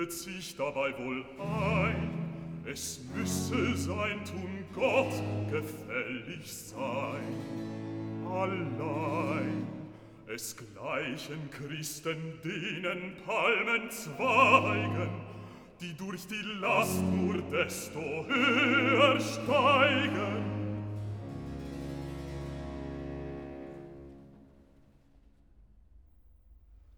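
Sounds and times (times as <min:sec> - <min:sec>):
bass singer recitative: 0:00.0 - 0:21.0.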